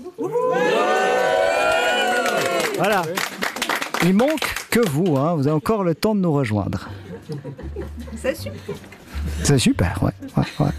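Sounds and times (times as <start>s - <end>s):
large studio audience cheering and shouting: 0.3s - 2.9s
speech: 2.8s - 3.3s, 4.0s - 10.7s
laughter: 6.8s - 10.7s.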